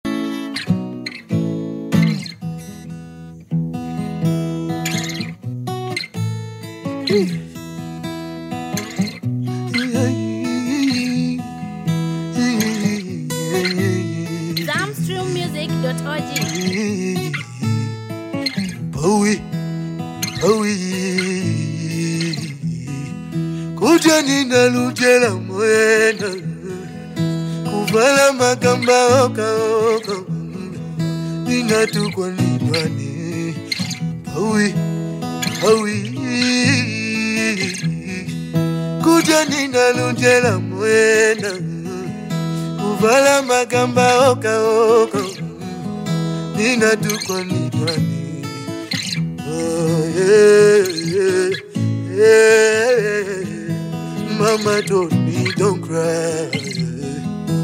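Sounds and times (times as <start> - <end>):
acoustic music: 0.0 - 57.6.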